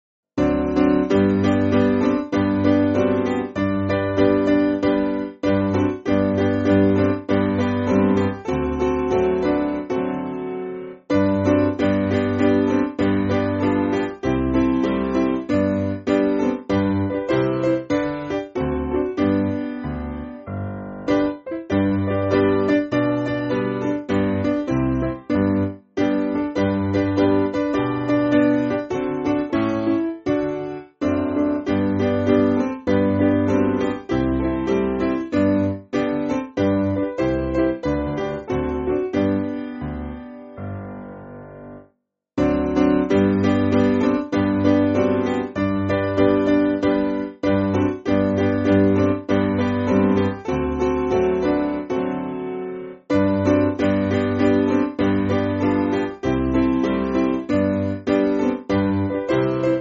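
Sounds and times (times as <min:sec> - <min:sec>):
piano piece: 0:00.4 - 0:59.7.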